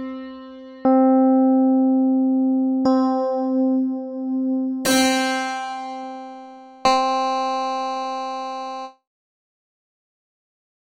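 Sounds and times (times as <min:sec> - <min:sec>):
keyboard playing: 0:00.8 - 0:08.9.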